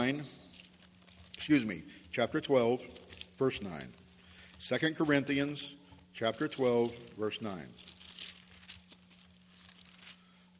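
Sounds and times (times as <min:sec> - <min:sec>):
speech: 0:00.0 - 0:00.4, 0:01.4 - 0:04.0, 0:04.6 - 0:07.9
low steady hum: 0:00.0 - 0:10.5
Bible pages being turned during a church service: 0:00.4 - 0:01.7, 0:02.8 - 0:04.7, 0:06.2 - 0:10.4.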